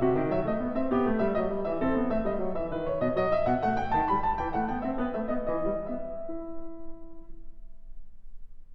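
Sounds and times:
baroque gavotte in E minor: 0.0 - 6.9.

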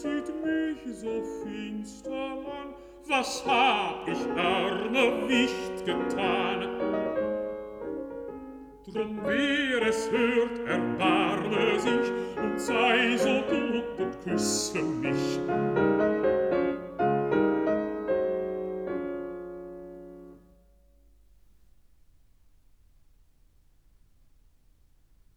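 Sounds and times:
person singing: 0.0 - 7.3, 8.8 - 16.1
piano: 0.0 - 25.3.

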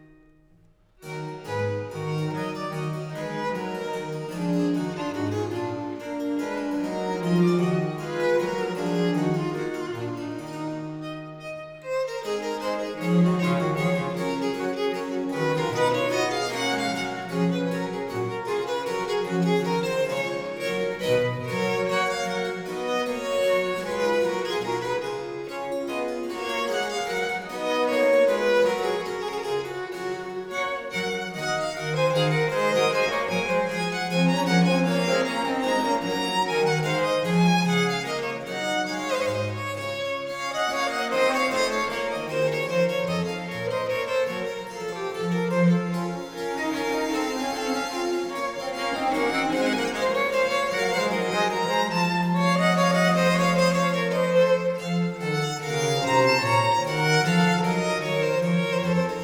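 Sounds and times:
trio sonata in E minor: 0.0 - 59.2.

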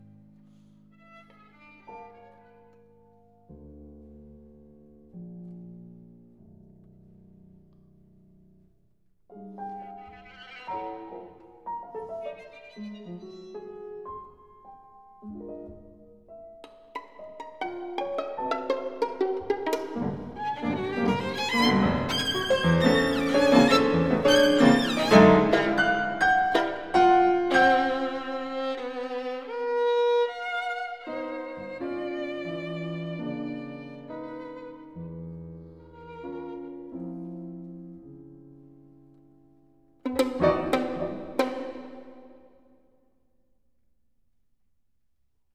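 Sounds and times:
piano: 0.0 - 42.8
violin: 0.8 - 3.5, 9.4 - 14.7, 15.4 - 38.0, 40.0 - 42.5.

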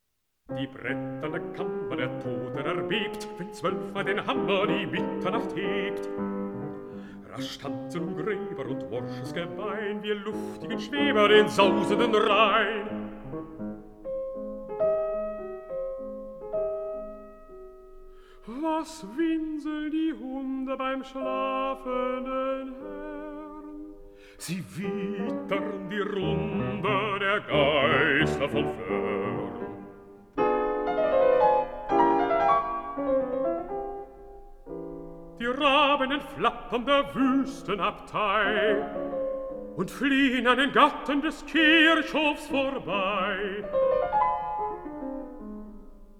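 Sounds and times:
piano: 0.0 - 46.1
person singing: 0.5 - 6.3, 6.9 - 13.6, 18.4 - 30.0, 35.4 - 44.1.

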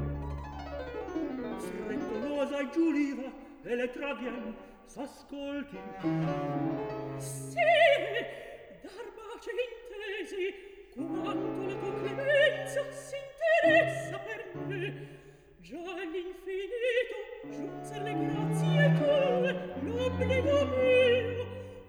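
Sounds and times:
opera recitative singing: 1.6 - 21.8.

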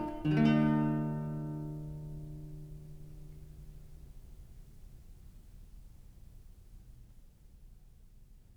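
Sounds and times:
solo cello playing: 0.0 - 3.8.

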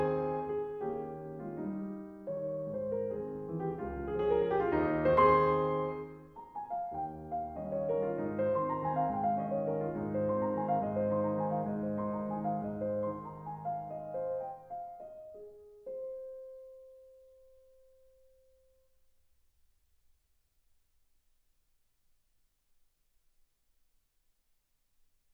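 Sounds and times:
mazurka for piano in A flat major: 0.0 - 18.4.

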